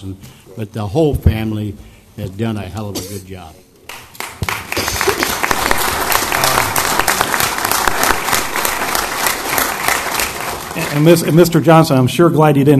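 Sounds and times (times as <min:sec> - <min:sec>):
speech: 0:00.0 - 0:03.6, 0:10.8 - 0:12.7
audience applauding: 0:03.9 - 0:11.8.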